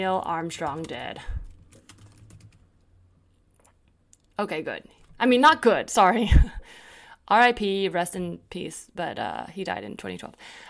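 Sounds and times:
speech: 0.0s - 1.4s, 4.4s - 10.6s
computer keyboard typing a web search: 0.4s - 2.7s.

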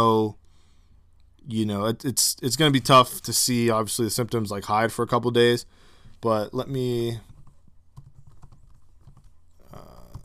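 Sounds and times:
speech: 1.5s - 7.3s
typing a search query on a computer keyboard: 7.2s - 10.2s.

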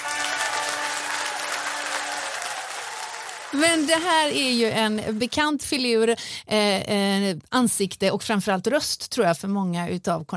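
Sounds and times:
applause sound effect: 0.0s - 5.4s
speech: 3.5s - 10.3s.

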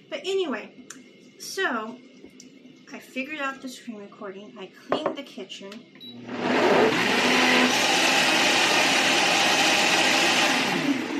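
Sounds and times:
speech: 0.2s - 0.8s, 1.4s - 2.1s, 2.9s - 8.5s
blender mixing a smoothie at full power: 6.1s - 11.1s.

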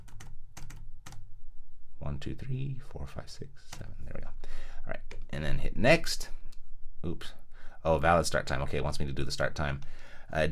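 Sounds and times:
typing on a computer keyboard: 0.0s - 1.2s
speech: 2.0s - 6.4s, 7.0s - 10.5s.

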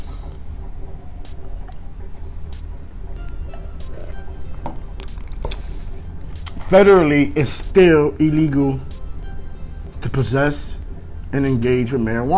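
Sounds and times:
sipping a drink: 3.8s - 6.6s
speech: 6.7s - 8.9s, 10.2s - 12.3s.

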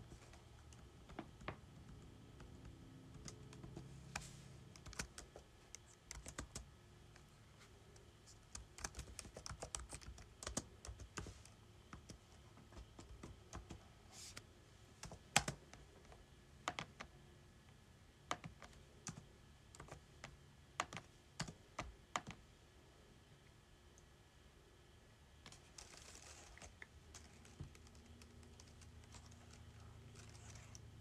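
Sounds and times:
typing on a keyboard: 0.0s - 7.3s, 7.9s - 13.8s, 15.0s - 15.8s, 16.6s - 17.1s, 18.3s - 22.4s, 25.5s - 30.9s.

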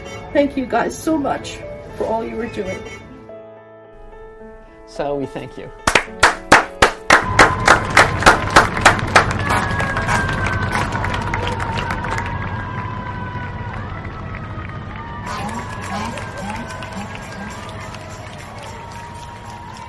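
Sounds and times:
speech: 0.3s - 3.0s, 4.9s - 6.4s
sharp evenly spaced claps or bangs: 5.8s - 12.3s
people cheering and clapping from balconies: 7.1s - 19.8s.

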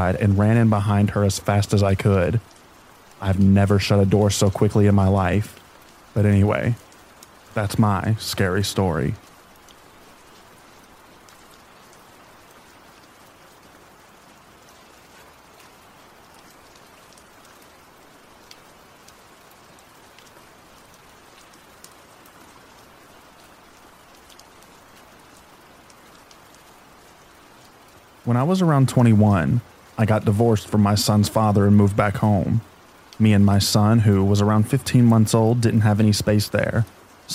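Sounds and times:
speech: 0.0s - 2.6s, 3.2s - 6.8s, 7.6s - 9.3s, 28.3s - 37.3s
rain: 0.0s - 37.3s.

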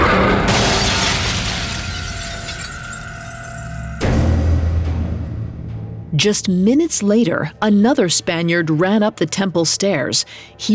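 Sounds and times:
heavy crash and low rumble: 0.0s - 5.9s
mirror shattering: 0.5s - 3.8s
speech: 6.2s - 10.7s.

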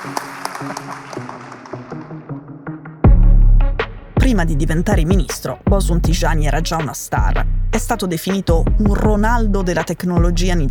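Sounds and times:
crowd applauding: 0.0s - 2.6s
tonal sound: 0.0s - 10.7s
speech: 4.4s - 10.7s.

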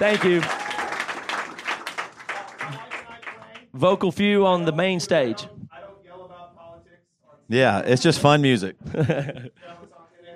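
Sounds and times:
speech: 0.0s - 0.6s, 3.8s - 5.6s, 7.5s - 10.0s
audience applause: 0.0s - 3.6s
laughter: 8.7s - 9.9s.

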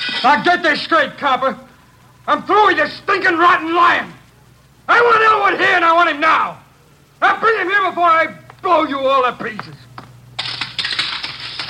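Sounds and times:
speech: 0.2s - 1.7s, 2.3s - 4.2s, 4.9s - 6.6s, 7.2s - 9.8s
telephone thrown and crashing to the floor in a hallway: 10.4s - 11.6s.

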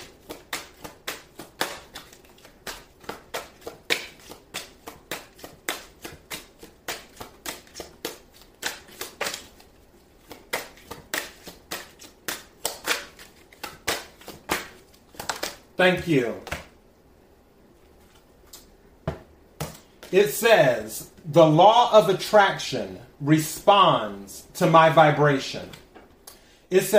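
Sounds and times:
tarot cards being shuffled and drawn: 0.0s - 16.7s, 17.9s - 18.7s
speech: 15.8s - 16.5s, 20.1s - 25.8s, 26.7s - 26.9s.

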